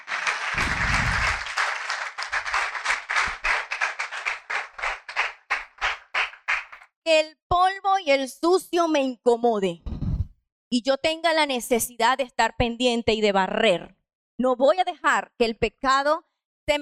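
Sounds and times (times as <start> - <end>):
audience applause: 0.0 - 6.8
speech: 7.1 - 7.4, 8.0 - 9.8, 10.7 - 16.8.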